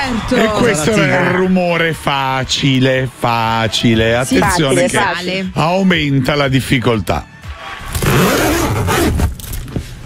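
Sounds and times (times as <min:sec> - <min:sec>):
speech: 0:00.1 - 0:07.3
zipper of a cooler bag: 0:07.9 - 0:09.7.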